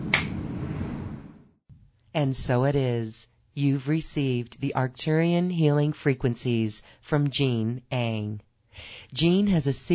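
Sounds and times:
finger snapping: 0.1 - 0.4
speech: 2.2 - 9.9.

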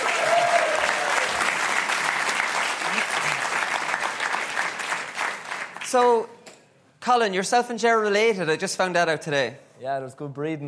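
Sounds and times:
person whooping: 0.0 - 1.4
audience applause welcoming panel guests: 0.0 - 6.1
speech: 5.9 - 6.4, 7.1 - 10.6.

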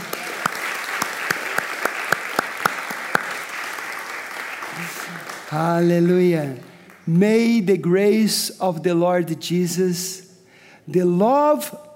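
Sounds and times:
audience applause: 0.0 - 7.0
speech: 5.5 - 10.2, 10.9 - 11.9.

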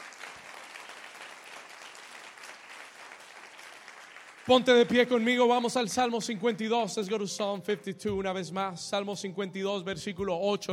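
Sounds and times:
audience clapping: 0.0 - 6.1
speech: 4.5 - 10.7.

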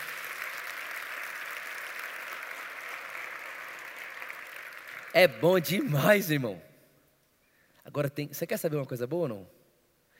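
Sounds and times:
audience applause: 0.0 - 6.0
speech: 5.2 - 6.7, 7.9 - 9.6.

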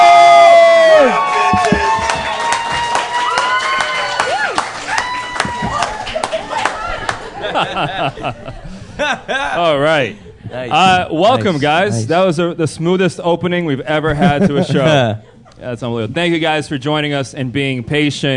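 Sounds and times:
audience whoops and raised voices at a live comedy show: 0.0 - 7.2
audience clapping at a live comedy show: 0.4 - 8.0
laughter: 5.5 - 11.8, 14.1 - 15.8
speech: 7.8 - 18.3.

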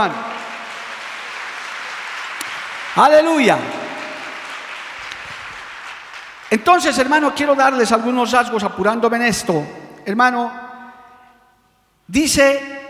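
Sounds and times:
speech: 0.0 - 0.2, 3.0 - 3.8, 6.5 - 10.6, 12.1 - 12.8
audience applause: 0.0 - 6.8.

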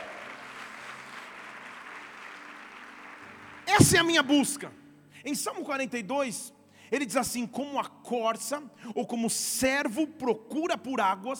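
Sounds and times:
audience applauding: 0.0 - 4.6
speech: 3.7 - 11.3.

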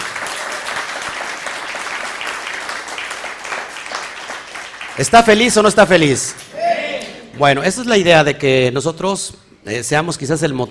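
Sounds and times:
audience applause: 0.0 - 5.2
speech: 5.0 - 6.4, 7.4 - 10.6.

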